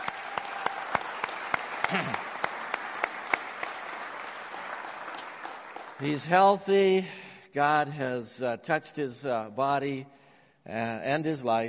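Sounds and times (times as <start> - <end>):
church congregation clapping to welcome a man: 0.0 - 7.0
speech: 1.9 - 2.3, 6.0 - 11.6.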